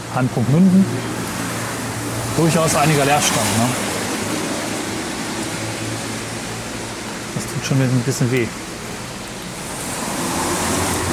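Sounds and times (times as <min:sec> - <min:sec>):
rain falling: 0:00.0 - 0:11.1
speech: 0:00.2 - 0:01.2, 0:02.4 - 0:03.9, 0:07.4 - 0:08.7.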